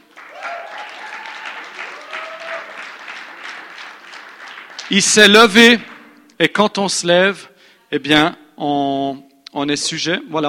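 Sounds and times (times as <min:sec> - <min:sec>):
audience applause: 0:00.0 - 0:06.0
speech: 0:04.9 - 0:10.4.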